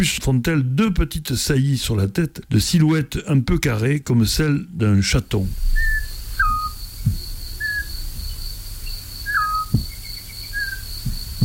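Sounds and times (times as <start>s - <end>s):
speech: 0.0s - 6.0s
continuous high insect drone: 5.5s - 11.4s
male and female owls calling to each other: 5.7s - 11.4s.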